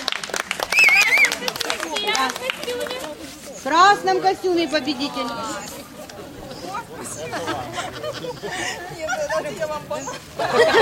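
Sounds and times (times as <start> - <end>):
crowd clapping: 0.0 - 3.3
excited voices: 0.6 - 10.7
wavering high whistle or shout: 0.7 - 1.3
speech: 3.6 - 5.5, 7.3 - 10.7
laughter: 6.2 - 10.7.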